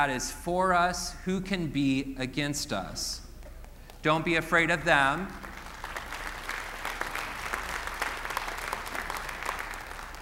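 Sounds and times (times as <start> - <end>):
speech: 0.0 - 3.2, 4.0 - 5.5
scattered applause from a modest crowd: 5.3 - 10.1.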